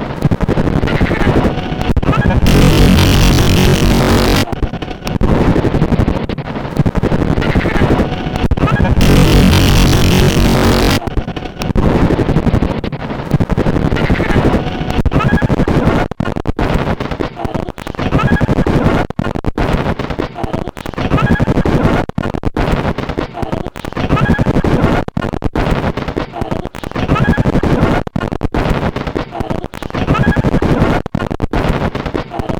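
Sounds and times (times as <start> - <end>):
circuit-bent CD player: 0.0 - 32.5.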